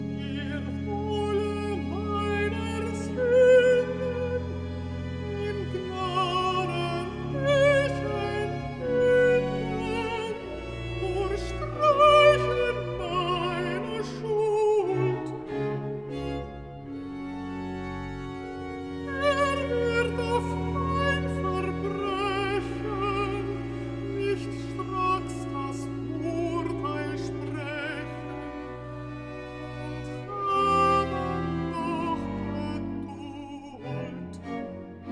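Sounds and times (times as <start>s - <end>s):
alto singing recitative: 0.1s - 16.3s, 18.9s - 28.8s, 29.6s - 34.8s.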